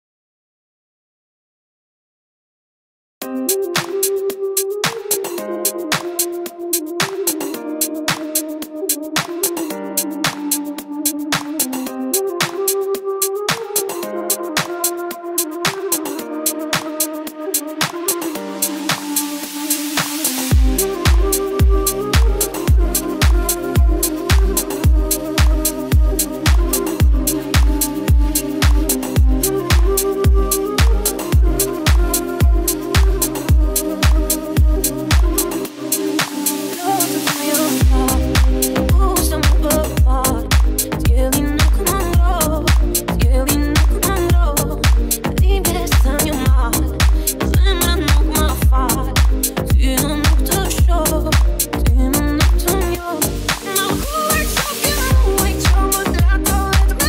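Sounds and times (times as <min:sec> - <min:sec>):
bass remix music: 0:03.3 - 0:57.0.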